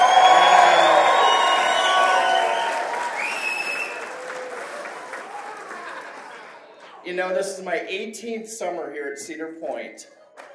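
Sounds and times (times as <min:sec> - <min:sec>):
audience yelling and cheering: 0:00.0 - 0:07.0
speech: 0:07.2 - 0:10.5.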